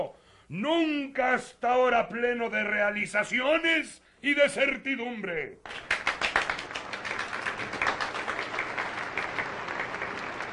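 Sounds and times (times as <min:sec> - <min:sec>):
speech: 0:00.0 - 0:05.9
applause: 0:05.6 - 0:10.5.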